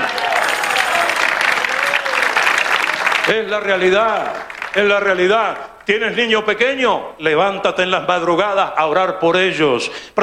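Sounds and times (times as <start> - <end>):
audience applause: 0.0 - 6.0
speech: 3.3 - 10.2.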